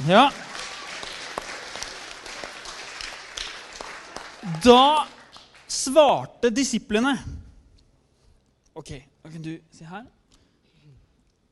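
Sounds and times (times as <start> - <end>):
speech: 0.0 - 0.4, 4.6 - 5.1, 5.7 - 7.4, 8.8 - 10.2
audience applause: 0.0 - 5.8.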